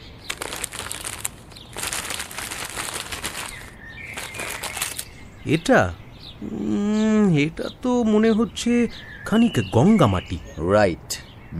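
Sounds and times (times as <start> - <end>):
paper wrapper being unfolded: 0.0 - 5.1
speech: 5.4 - 11.5.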